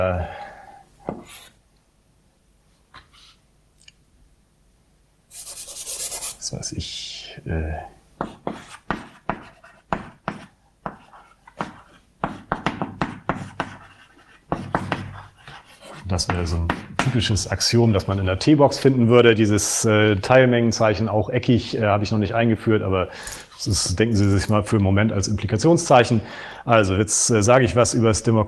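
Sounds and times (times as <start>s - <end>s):
formulas being written on a board during a lecture on logic axioms: 1.1s - 1.6s, 8.2s - 17.4s
lecturer talking: 6.4s - 8.0s, 15.8s - 28.4s
speech: 6.5s - 8.0s, 16.1s - 28.4s.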